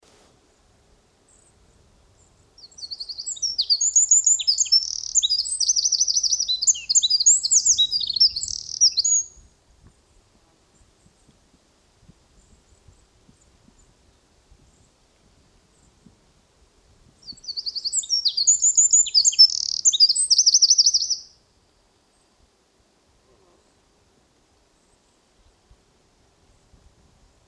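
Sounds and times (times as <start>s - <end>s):
Eurasian wren singing: 2.6s - 9.4s, 17.2s - 21.3s.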